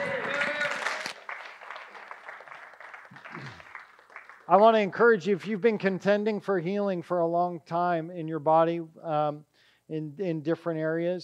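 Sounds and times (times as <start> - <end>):
audience applause: 0.0 - 4.8
speech: 4.5 - 11.2.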